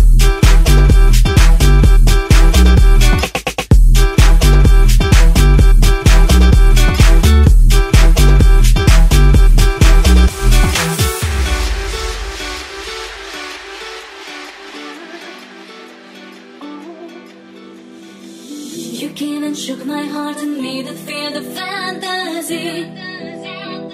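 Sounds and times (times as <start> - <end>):
retro funk dance music: 0.0 - 18.8.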